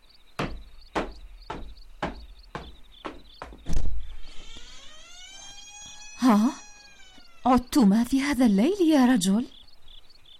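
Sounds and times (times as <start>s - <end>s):
knocking on a door: 0.4s - 3.8s
speech: 6.2s - 6.6s, 7.4s - 9.6s.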